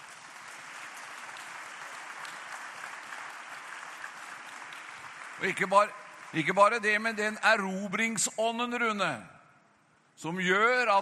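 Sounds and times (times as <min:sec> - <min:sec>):
audience applause: 0:00.0 - 0:06.8
speech: 0:05.4 - 0:09.4, 0:10.2 - 0:11.0.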